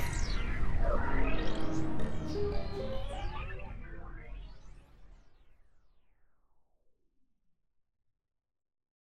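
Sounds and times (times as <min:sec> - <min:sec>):
bridge suspense mood music: 0:00.0 - 0:05.1.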